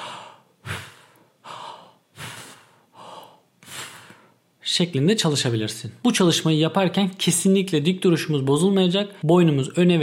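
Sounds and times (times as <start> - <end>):
deep breaths in and out during a breathing exercise demonstration: 0.0 - 4.4
speech: 4.7 - 10.0.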